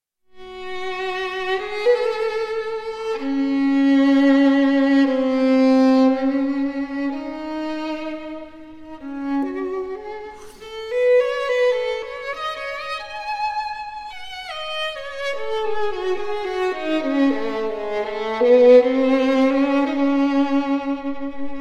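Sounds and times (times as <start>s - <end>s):
romance for violin and piano: 0.4s - 21.5s.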